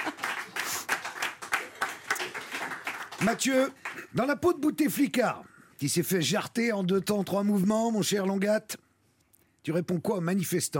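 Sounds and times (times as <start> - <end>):
audience applause: 0.0 - 4.1
speech: 3.2 - 8.8, 9.6 - 10.7.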